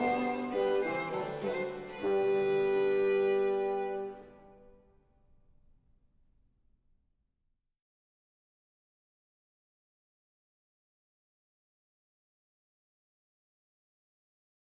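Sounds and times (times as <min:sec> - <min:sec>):
dulcian: 0:00.0 - 0:05.5.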